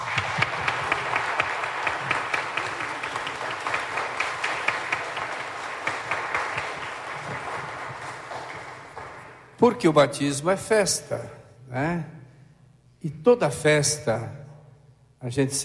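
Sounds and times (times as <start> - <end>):
audience applauding: 0.0 - 9.6
speech: 9.6 - 12.2, 13.0 - 14.4, 15.2 - 15.6.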